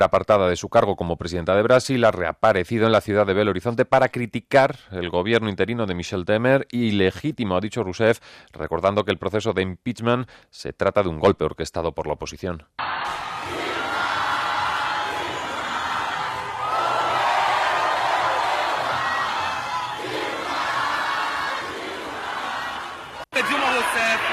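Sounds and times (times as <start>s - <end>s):
speech: 0.0s - 13.6s
large crowd of supporters chanting in unison: 12.8s - 24.3s.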